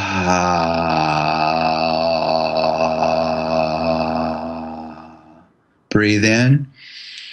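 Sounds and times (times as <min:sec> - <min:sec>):
vocal toning on the out-breath: 0:00.0 - 0:05.4
speech: 0:00.3 - 0:00.7, 0:06.0 - 0:06.8.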